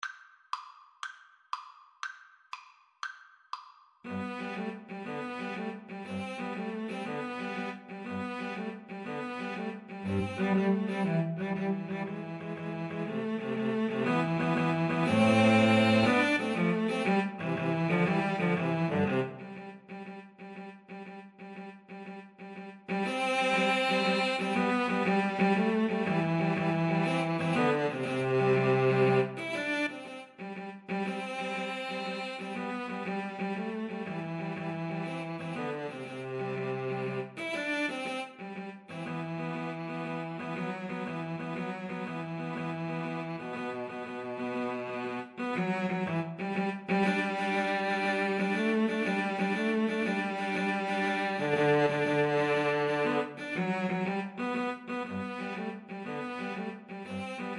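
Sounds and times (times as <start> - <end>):
cello trio: 4.1 - 57.5.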